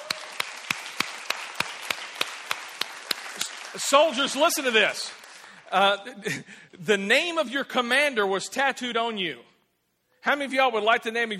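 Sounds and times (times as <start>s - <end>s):
audience clapping: 0.0s - 5.9s
speech: 3.4s - 9.5s, 10.2s - 11.3s.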